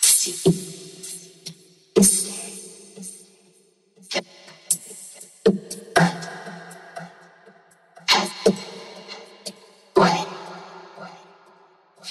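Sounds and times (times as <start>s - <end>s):
electronic a cappella vocals: 0.0s - 3.3s, 4.0s - 12.0s.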